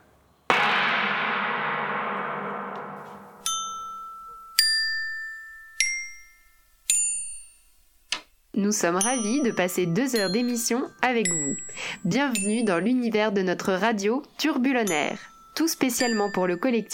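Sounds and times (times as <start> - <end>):
gong strike marking the start of a radio broadcast: 0.5 - 4.0
speech: 8.6 - 16.9.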